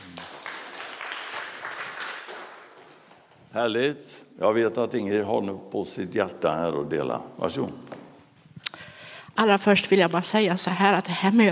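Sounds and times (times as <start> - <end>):
audience applause: 0.0 - 3.3
speech: 3.6 - 7.9, 9.4 - 11.5.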